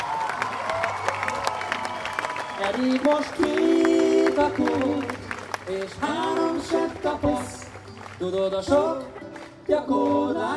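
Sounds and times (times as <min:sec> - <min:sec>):
cheering: 0:00.0 - 0:06.9
audience applause: 0:00.0 - 0:10.5
speech: 0:02.6 - 0:07.6, 0:08.2 - 0:10.5.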